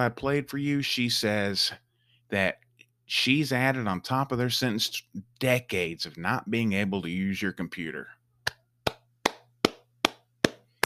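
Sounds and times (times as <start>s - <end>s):
speech: 0.0s - 8.2s
person clapping: 8.5s - 10.8s.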